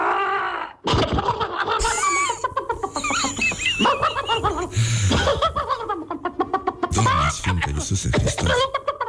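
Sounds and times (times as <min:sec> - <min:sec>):
laughter: 0:00.8 - 0:09.0
hen coughing: 0:05.0 - 0:05.6.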